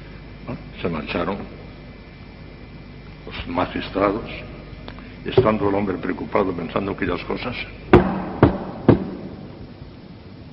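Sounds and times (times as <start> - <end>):
speech: 0.5 - 1.6, 3.3 - 4.6, 5.2 - 8.1
knocking on a door: 5.4 - 5.6, 8.0 - 9.2.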